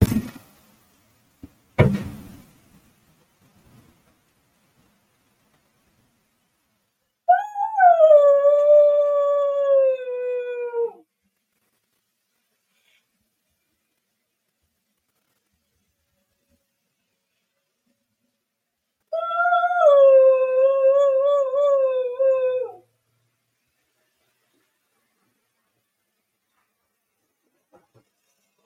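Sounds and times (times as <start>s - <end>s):
sharp knocks: 1.4s - 2.4s
dog howling: 7.3s - 11.0s, 19.1s - 22.8s.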